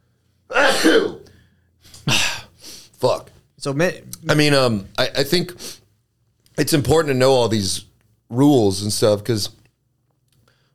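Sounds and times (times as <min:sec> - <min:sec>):
sneeze: 0:00.5 - 0:01.3
speech: 0:03.0 - 0:05.8, 0:06.6 - 0:09.6.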